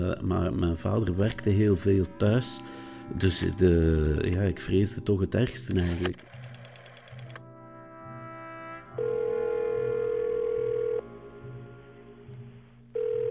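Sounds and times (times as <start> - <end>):
speech: 0.0 - 6.4
telephone ringing tone: 9.0 - 11.1, 13.0 - 13.3.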